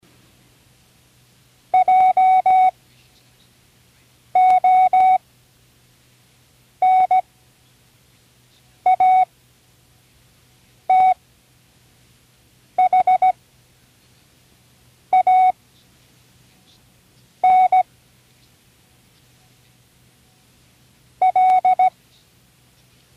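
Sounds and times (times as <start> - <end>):
Morse code: 1.8 - 2.7, 4.4 - 5.2, 6.8 - 7.2, 8.9 - 9.3, 10.9 - 11.2, 12.8 - 13.4, 15.1 - 15.6, 17.4 - 17.9, 21.2 - 21.9.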